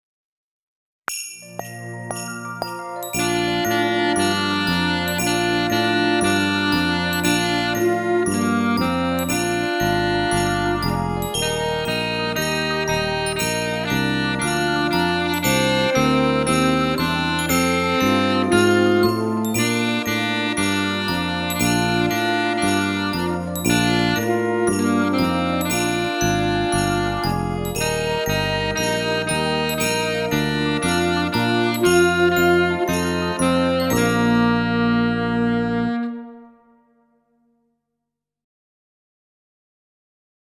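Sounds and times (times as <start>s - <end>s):
Christmas song: 1.1s - 37.0s.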